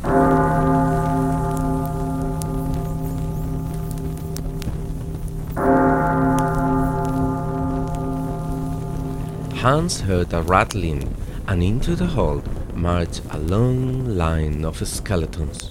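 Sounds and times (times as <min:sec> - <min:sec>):
deep clock bell striking: 0:00.0 - 0:10.3
rain-like hiss: 0:00.0 - 0:15.7
speech: 0:09.6 - 0:15.7.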